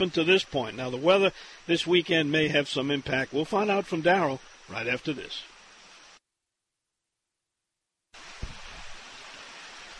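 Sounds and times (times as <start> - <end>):
speech: 0.0 - 5.5
raindrops falling: 0.0 - 6.2, 8.2 - 9.9
low thump: 8.4 - 8.8.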